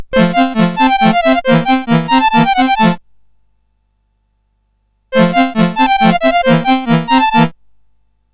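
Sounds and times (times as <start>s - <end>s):
polonaise on CSG8580R5 sound chip: 0.0s - 3.0s, 5.1s - 7.6s.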